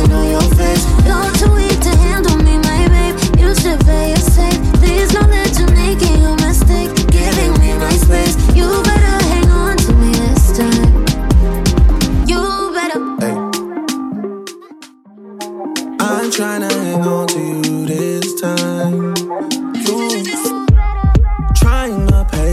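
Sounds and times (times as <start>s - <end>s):
Top40 pop dance music at 128 bpm: 0.0s - 22.5s.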